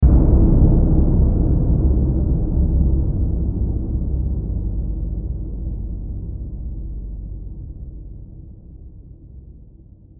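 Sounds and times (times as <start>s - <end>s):
trailer drum hit: 0.0s - 9.2s.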